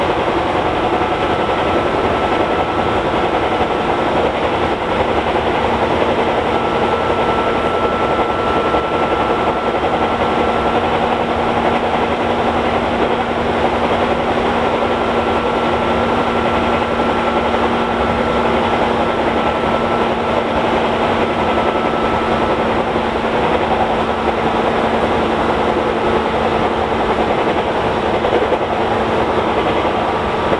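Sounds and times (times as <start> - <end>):
Tobu 6169 train motor: 0.0 - 30.5.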